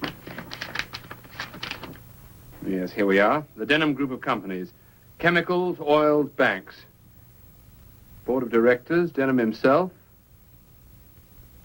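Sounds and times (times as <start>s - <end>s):
file folder picked up in a study: 0.0s - 2.0s
speech: 2.7s - 6.9s, 8.3s - 10.0s.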